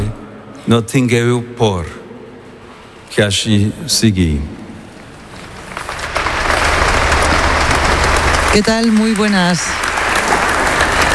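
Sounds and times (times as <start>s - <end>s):
speech: 0.7s - 2.0s, 3.1s - 4.6s, 8.5s - 9.9s
applause after a papal speech: 5.8s - 11.1s.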